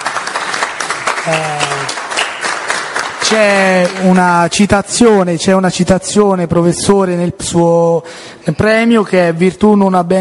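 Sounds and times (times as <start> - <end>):
audience applause: 0.0 - 4.2
speech: 1.2 - 2.0, 3.3 - 10.1.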